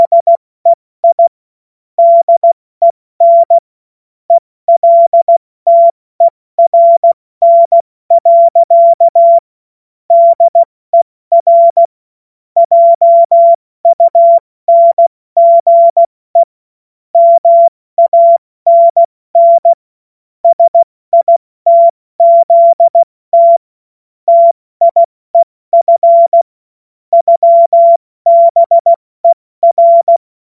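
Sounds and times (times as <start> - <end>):
CW Morse code beeps: 0.0 - 0.4, 1.0 - 1.3, 2.0 - 3.6, 4.7 - 9.4, 10.1 - 11.9, 12.6 - 16.5, 17.2 - 19.8, 20.4 - 23.6, 24.3 - 26.5, 27.1 - 30.2.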